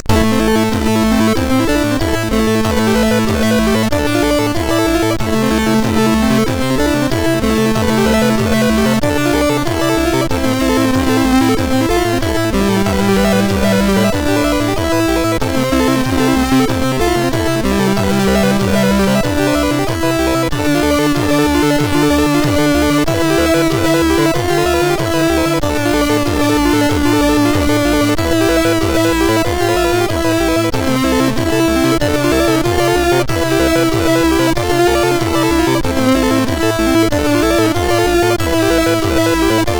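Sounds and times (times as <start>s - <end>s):
chiptune music on a MOS6581R2 SID chip: 0.0s - 39.7s.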